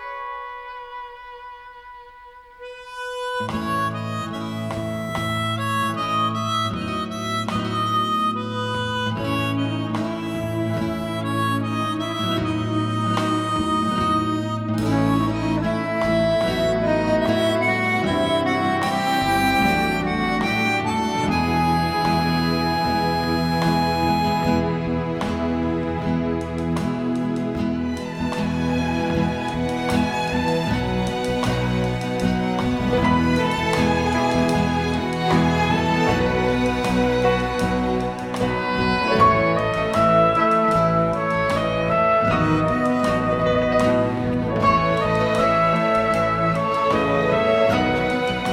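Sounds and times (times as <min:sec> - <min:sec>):
harp: 0:02.6 - 0:48.5.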